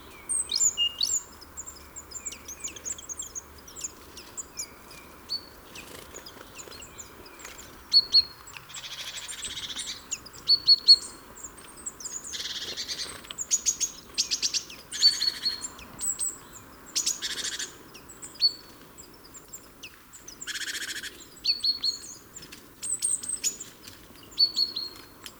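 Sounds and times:
great tit calls: 0.0 - 25.3.

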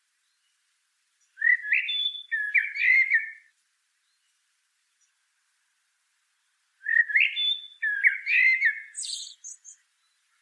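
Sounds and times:
common blackbird singing: 1.2 - 4.3, 6.8 - 10.4.

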